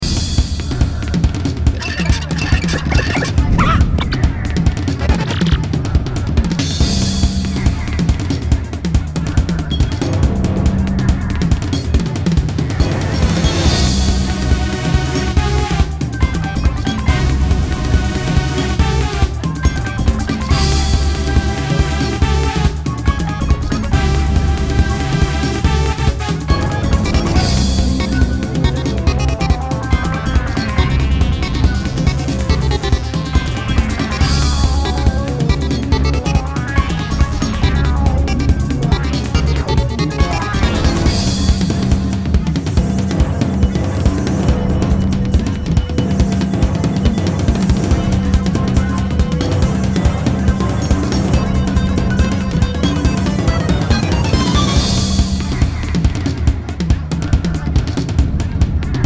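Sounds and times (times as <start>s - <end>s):
boss battle game music: 0.0s - 59.0s.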